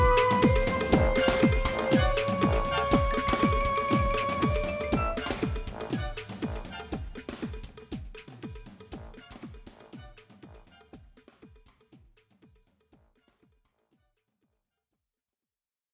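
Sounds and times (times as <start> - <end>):
orchestral music: 0.0 - 7.4.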